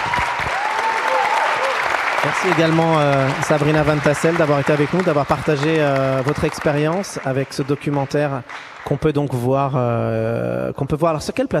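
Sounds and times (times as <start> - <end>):
audience applause: 0.0 - 9.1
speech: 2.2 - 11.5.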